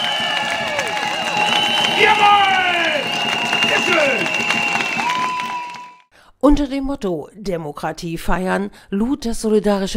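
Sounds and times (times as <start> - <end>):
crowd shouting: 0.0 - 6.0
speech: 6.4 - 9.9.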